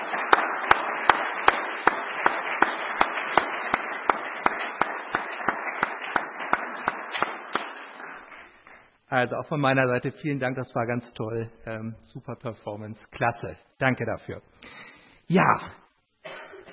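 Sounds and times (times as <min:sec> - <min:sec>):
audience applause: 0:00.0 - 0:08.6
speech: 0:09.1 - 0:14.6, 0:15.3 - 0:15.8.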